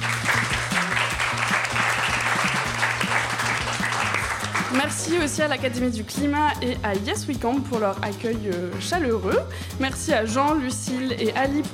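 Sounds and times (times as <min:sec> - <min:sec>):
audience applause: 0:00.0 - 0:05.1
speech: 0:04.8 - 0:11.7.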